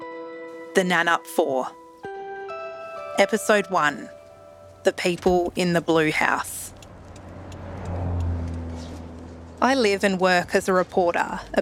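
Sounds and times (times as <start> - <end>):
speech: 0.8 - 1.8, 3.2 - 4.2, 4.8 - 6.6, 9.6 - 11.6
faint road noise: 2.8 - 11.6
car engine rolling across a bridge toward Nannup: 3.0 - 11.6.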